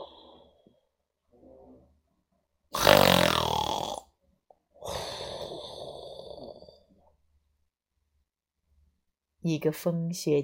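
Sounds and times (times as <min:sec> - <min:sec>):
person imitating loud snoring: 0:02.7 - 0:04.1, 0:04.8 - 0:06.8
speech: 0:09.5 - 0:10.4.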